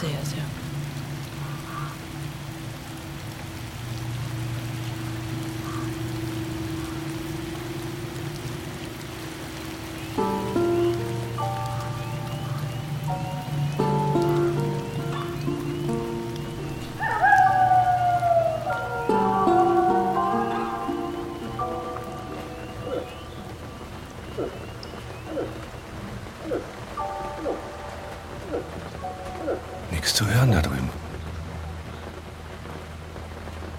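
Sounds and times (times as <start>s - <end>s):
rain on a hard surface: 0.0s - 33.7s
shifting tonal notes: 2.8s - 24.2s, 27.0s - 31.2s.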